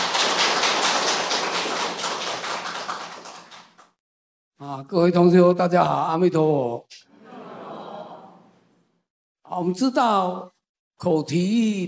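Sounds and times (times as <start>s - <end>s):
audience applause: 0.0s - 3.8s
speech: 4.6s - 7.1s, 9.5s - 11.8s
laughter: 7.2s - 8.5s.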